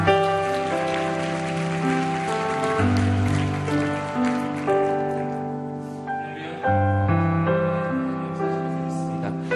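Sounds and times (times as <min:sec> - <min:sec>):
audience applause: 0:00.0 - 0:05.6
loud sustained keyboard chords: 0:00.0 - 0:09.5.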